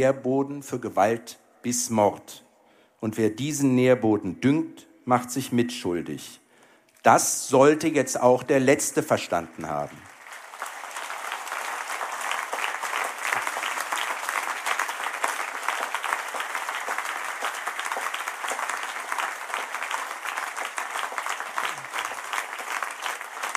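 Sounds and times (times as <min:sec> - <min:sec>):
speech: 0:00.0 - 0:06.4, 0:07.0 - 0:10.1
applause in parliament: 0:09.2 - 0:23.5.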